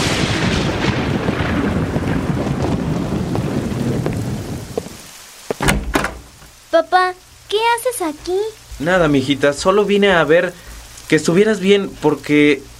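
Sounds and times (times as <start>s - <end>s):
thunder: 0.0s - 6.1s
rain: 0.0s - 12.7s
speech: 6.8s - 12.7s.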